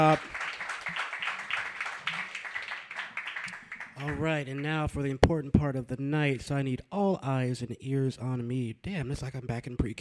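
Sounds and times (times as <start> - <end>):
speech: 0.0 - 0.4, 4.0 - 9.9
audience applause: 0.0 - 4.7.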